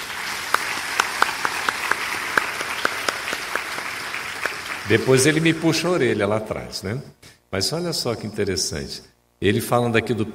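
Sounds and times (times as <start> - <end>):
audience applause: 0.0 - 5.9
speech: 4.9 - 10.3.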